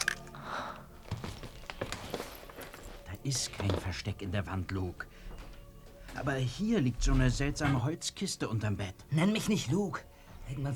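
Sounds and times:
cautious footsteps approaching a door: 1.0 - 4.2, 5.0 - 7.4
speech: 3.2 - 5.3, 6.2 - 10.7.

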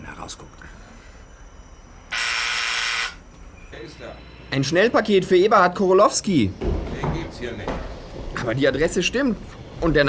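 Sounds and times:
speech: 0.3 - 0.8, 3.8 - 10.0
doorbell buzzer: 2.1 - 3.2.

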